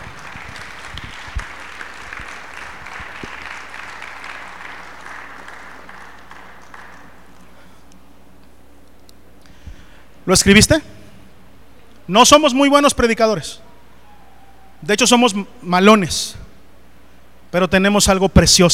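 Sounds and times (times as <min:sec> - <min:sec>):
audience applause: 0:00.0 - 0:07.5
speech: 0:10.3 - 0:11.0, 0:12.1 - 0:13.6, 0:14.9 - 0:16.4, 0:17.5 - 0:18.7.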